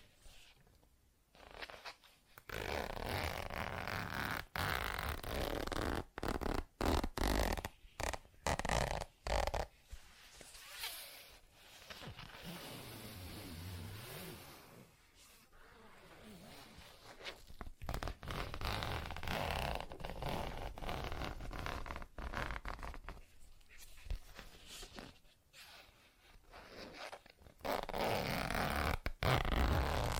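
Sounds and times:
zippers being worked: 2.5s - 9.7s, 17.9s - 22.8s, 26.7s - 30.1s.

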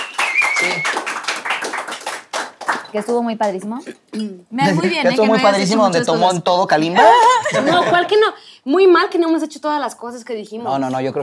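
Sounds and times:
applause from a small group: 0.0s - 3.6s
speech: 0.6s - 1.2s, 2.9s - 11.2s
laughter: 6.9s - 8.2s.

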